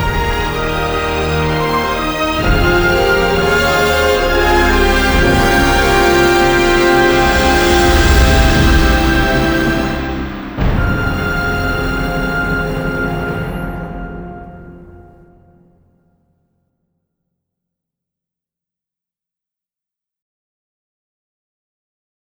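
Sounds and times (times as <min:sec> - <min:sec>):
orchestra playing without choir: 0:00.0 - 0:15.7.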